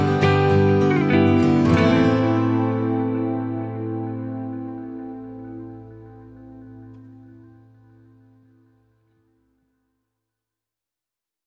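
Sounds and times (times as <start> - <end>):
guitars playing: 0.0 - 9.1.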